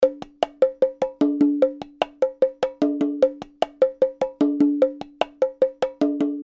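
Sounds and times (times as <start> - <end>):
percussion: 0.0 - 6.4.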